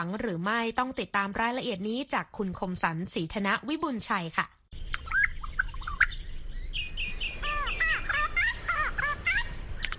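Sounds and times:
speech: 0.0 - 4.6
songbirds singing: 4.7 - 9.9.

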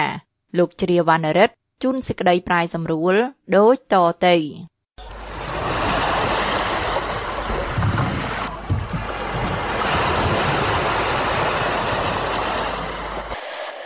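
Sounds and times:
speech: 0.0 - 4.7
sea surf washing at a fishing village on the Cameroon coast: 5.0 - 13.8.

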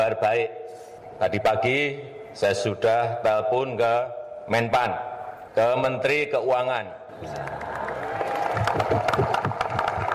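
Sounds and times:
speech: 0.1 - 7.8
crowd of soldiers applauding and cheering: 7.2 - 10.1.

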